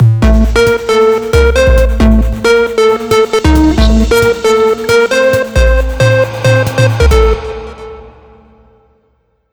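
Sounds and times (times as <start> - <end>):
trap beat: 0.0 - 8.0.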